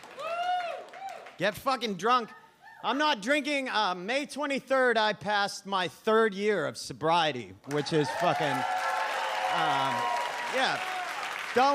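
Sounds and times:
comedy club audience clapping: 0.0s - 1.5s, 7.6s - 11.7s
speech: 1.4s - 8.8s, 9.5s - 10.9s, 11.6s - 11.7s.

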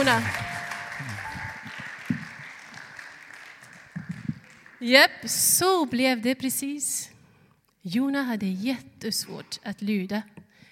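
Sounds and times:
speech: 0.0s - 0.4s, 4.8s - 7.1s, 7.8s - 10.3s
applause: 0.0s - 5.4s.

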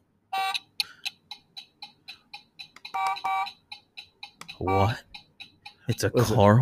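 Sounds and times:
battery-powered buzzer sounding: 0.3s - 0.7s, 2.8s - 6.1s
speech: 4.6s - 5.1s, 5.9s - 6.6s.

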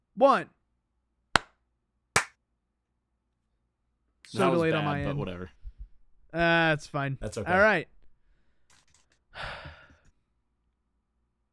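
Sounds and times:
speech: 0.2s - 0.6s, 4.3s - 5.6s, 6.3s - 8.0s
single hand clap for audio sync: 2.2s - 2.4s.

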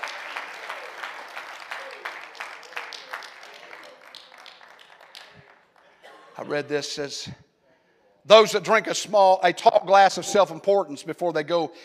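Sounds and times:
audience clapping hands: 0.0s - 6.0s
speech: 6.4s - 7.4s, 8.2s - 11.8s.

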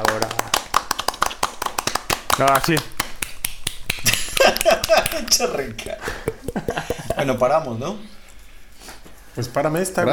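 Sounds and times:
clapping: 0.0s - 6.0s
speech: 2.4s - 3.0s, 4.5s - 8.2s, 9.4s - 10.1s
laughter: 4.1s - 7.3s.

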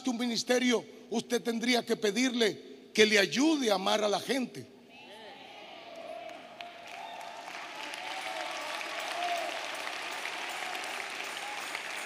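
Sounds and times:
speech: 0.0s - 4.8s
audience applause: 5.9s - 12.0s.

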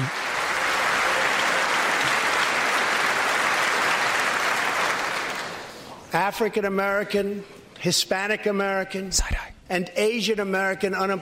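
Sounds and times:
sustained applause from a large audience: 0.0s - 5.8s
speech: 6.2s - 11.1s.

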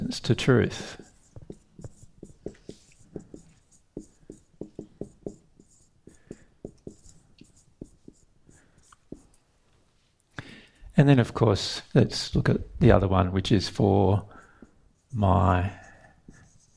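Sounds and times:
speech: 0.2s - 1.0s, 11.0s - 14.3s, 15.1s - 15.8s
handwriting with a pen on paper: 0.8s - 9.4s, 15.8s - 16.7s.

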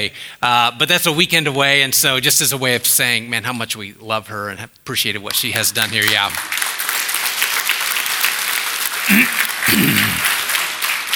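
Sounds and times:
speech: 0.0s - 6.6s, 9.1s - 10.3s
room full of people applauding: 5.8s - 11.1s.

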